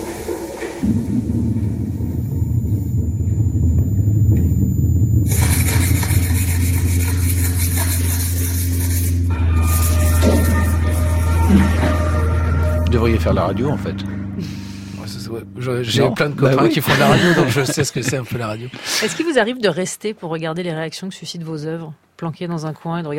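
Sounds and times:
Paris metro train rumbling: 0.0 - 17.8
speech: 0.8 - 1.7, 13.0 - 14.6, 15.6 - 23.1
laughter: 16.5 - 19.3.

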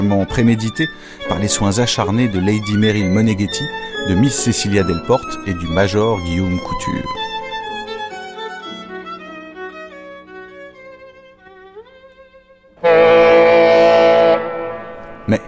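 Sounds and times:
speech: 0.1 - 7.3
ship's horn before setting sail: 12.8 - 15.4.

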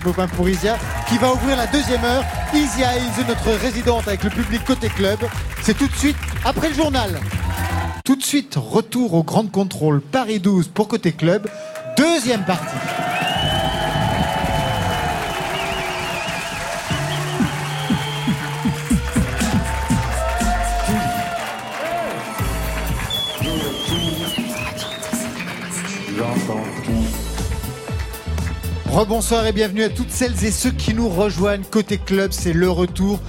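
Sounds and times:
large live audience cheering at the Grand Contrôle in Paris: 0.0 - 8.0, 11.4 - 27.3
speech: 0.0 - 13.2, 29.0 - 33.2.

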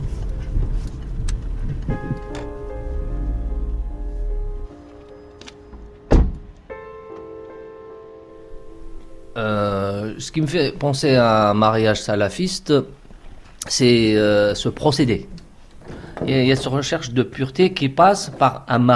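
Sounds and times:
car parking behind another car: 0.0 - 7.3
speech: 10.2 - 13.0, 13.7 - 15.4, 16.2 - 18.9.

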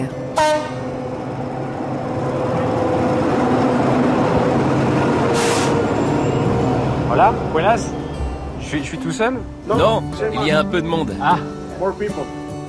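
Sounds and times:
train idling at a mountain railway station: 0.0 - 12.0
speech: 7.6 - 8.0, 8.7 - 12.4.

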